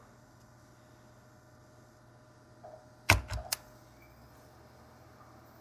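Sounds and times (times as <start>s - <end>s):
old disk drive humming and rattling while restarting: 2.8s - 3.7s
disk drive sharp clicking knocks: 3.1s - 3.6s.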